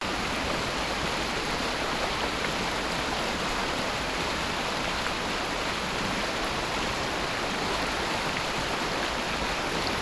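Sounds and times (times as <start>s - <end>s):
flowing water stream: 0.0s - 9.9s.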